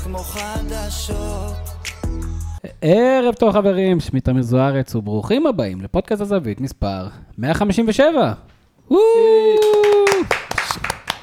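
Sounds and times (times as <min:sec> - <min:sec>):
speech: 0:00.1 - 0:01.7, 0:02.6 - 0:10.4
applause: 0:09.6 - 0:11.2.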